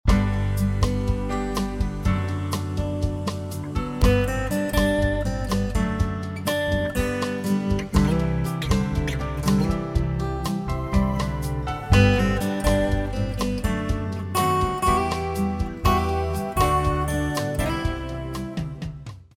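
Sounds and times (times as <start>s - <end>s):
switchboard telephone hold music: 0.1s - 19.1s.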